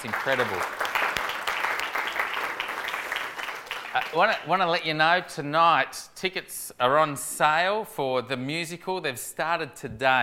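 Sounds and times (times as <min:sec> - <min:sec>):
speech: 0:00.0 - 0:00.8, 0:03.9 - 0:10.2
applause: 0:00.0 - 0:04.5.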